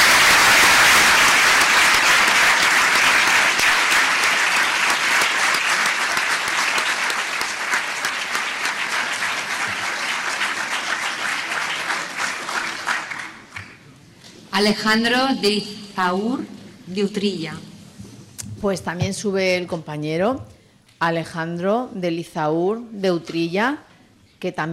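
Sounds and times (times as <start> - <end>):
audience applause: 0.0 - 13.8
speech: 14.6 - 17.7, 18.6 - 24.7.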